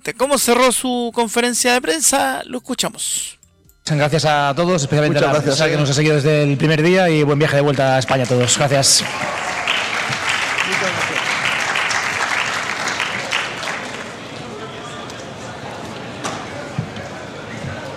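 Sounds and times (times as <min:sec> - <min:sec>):
speech: 0:00.1 - 0:09.5
applause and ovation at press conference: 0:07.5 - 0:15.3.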